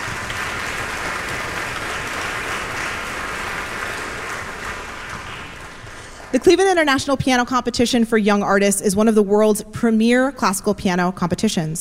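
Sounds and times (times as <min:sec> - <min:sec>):
audience applause: 0:00.0 - 0:06.8
speech: 0:06.3 - 0:11.7.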